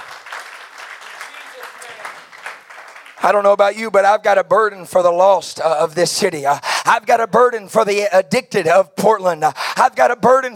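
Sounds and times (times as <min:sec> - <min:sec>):
audience clapping hands: 0:00.0 - 0:03.6
speech: 0:03.2 - 0:10.5.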